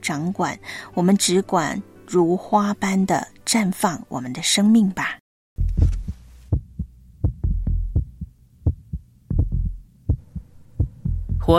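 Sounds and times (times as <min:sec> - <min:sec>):
speech: 0:00.0 - 0:05.2
heartbeat sound effect thumps: 0:05.6 - 0:11.5.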